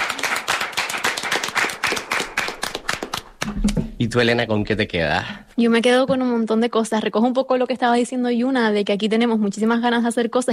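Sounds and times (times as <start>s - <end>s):
audience applause: 0.0s - 3.6s
speech: 3.5s - 10.5s.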